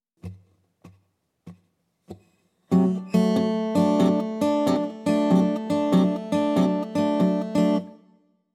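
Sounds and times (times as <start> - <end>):
blues rock guitar in open tunings: 2.7 - 7.9.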